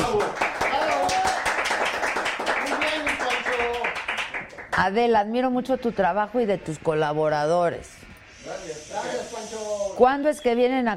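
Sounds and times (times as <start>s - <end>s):
applause from a group: 0.0s - 4.8s
speech: 4.8s - 10.9s.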